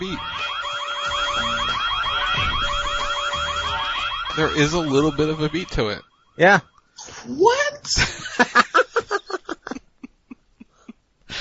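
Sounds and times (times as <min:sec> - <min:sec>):
speech: 0:00.0 - 0:00.6, 0:04.4 - 0:08.6
wailing sirens: 0:00.0 - 0:06.2
low rumbling: 0:01.1 - 0:05.8
laughter: 0:08.0 - 0:10.9.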